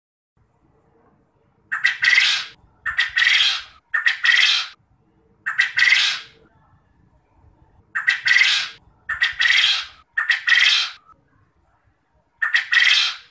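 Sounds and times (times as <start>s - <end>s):
quail buzzy calls: 1.7s - 4.8s, 5.4s - 6.4s, 8.0s - 11.1s, 12.4s - 13.3s.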